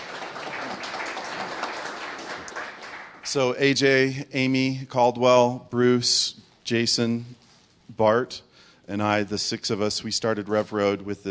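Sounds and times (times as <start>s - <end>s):
audience clapping: 0.0s - 3.6s
speech: 3.3s - 7.4s, 8.0s - 11.2s.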